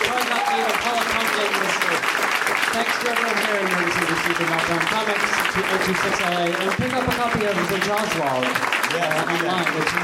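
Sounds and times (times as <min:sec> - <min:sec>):
audience applause: 0:00.0 - 0:10.0
speech: 0:03.0 - 0:10.0.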